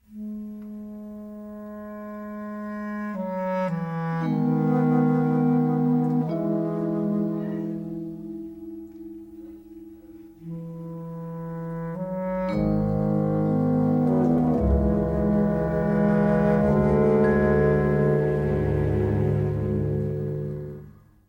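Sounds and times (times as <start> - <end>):
sad string loops: 3.7 - 21.2.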